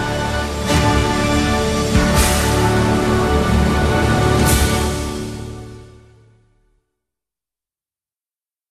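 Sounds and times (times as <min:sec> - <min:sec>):
national anthem: 0:00.0 - 0:06.2.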